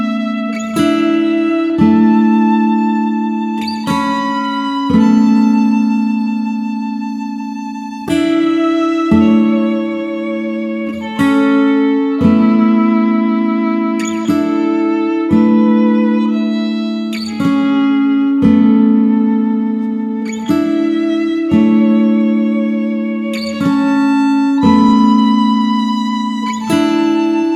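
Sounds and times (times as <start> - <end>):
tension guitar in A: 0.0 - 27.5.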